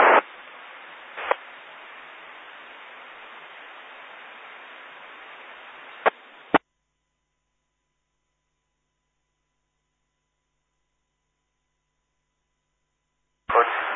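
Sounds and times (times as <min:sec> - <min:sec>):
radio repeater keyed open without modulation: 0:00.0 - 0:06.6, 0:13.5 - 0:13.9.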